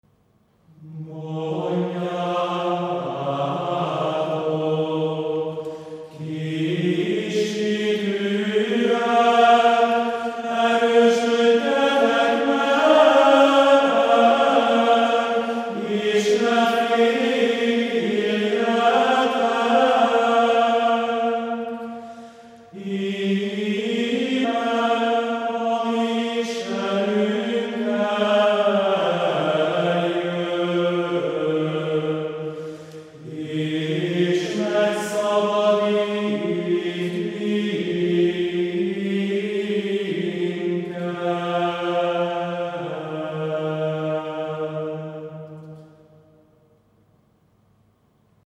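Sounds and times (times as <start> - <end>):
Gregorian chant: 0.7 - 46.3.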